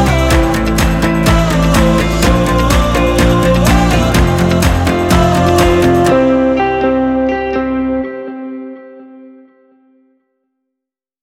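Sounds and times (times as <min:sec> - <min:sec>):
upbeat inspiring indie pop corporate backing music: 0:00.0 - 0:09.0.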